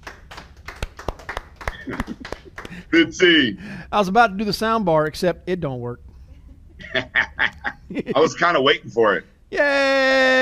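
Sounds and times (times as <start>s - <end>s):
audience clapping for a presenter: 0.0s - 2.9s
laughter: 1.7s - 3.1s, 6.3s - 8.5s
speech: 1.9s - 2.2s, 2.8s - 6.0s, 6.8s - 7.2s, 7.9s - 10.4s.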